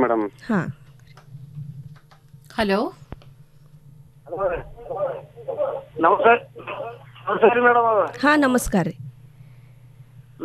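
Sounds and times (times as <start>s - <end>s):
speech: 0.0s - 0.8s, 2.6s - 3.0s, 4.3s - 9.0s
steady low hum: 0.0s - 10.4s
radio voices on a phone line: 4.3s - 8.2s.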